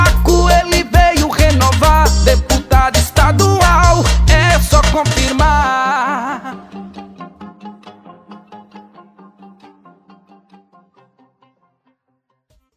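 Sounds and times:
funk jingle: 0.0 - 8.6.

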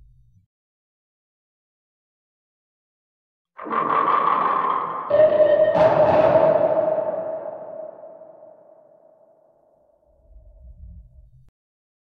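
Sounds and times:
creepy horror jumpscare sound: 3.6 - 9.3.

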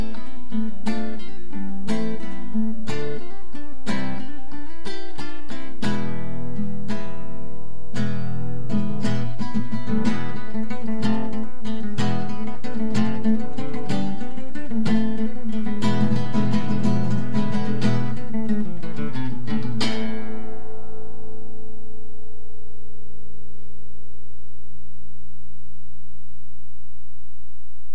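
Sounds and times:
flamenco music: 0.0 - 22.2.

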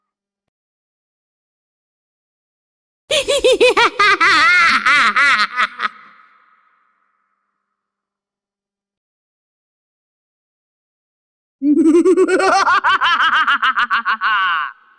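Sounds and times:
creepy horror laughter: 3.1 - 6.8, 11.6 - 14.9.

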